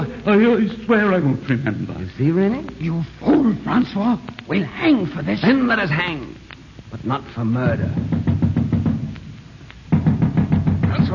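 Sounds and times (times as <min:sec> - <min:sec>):
speech: 0:00.2 - 0:08.1
heavy knocking on a door as the king's watch arrives: 0:07.7 - 0:09.1, 0:09.9 - 0:11.1.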